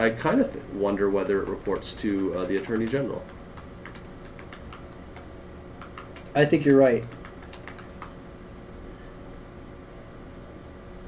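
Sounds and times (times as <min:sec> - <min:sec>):
speech: 0:00.0 - 0:03.4, 0:06.4 - 0:07.2
low hum: 0:00.0 - 0:11.0
faint typing on a computer keyboard: 0:01.2 - 0:08.2.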